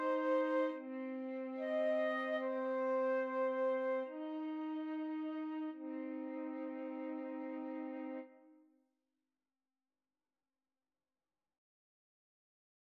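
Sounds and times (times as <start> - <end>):
flute trio playing: 0.0 - 8.3.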